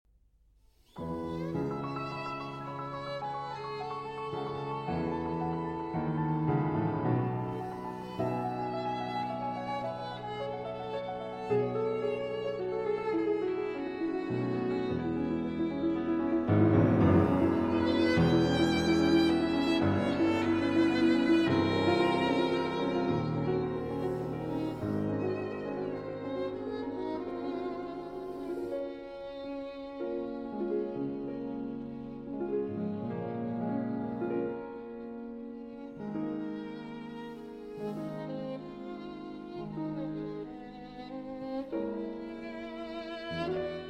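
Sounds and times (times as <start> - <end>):
violin sonata ballade in A flat minor: 0.9 - 43.8.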